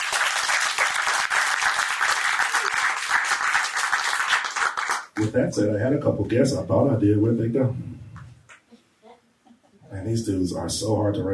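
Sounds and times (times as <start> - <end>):
audience applause: 0.0 - 5.3
speech: 5.2 - 7.9, 10.1 - 11.3.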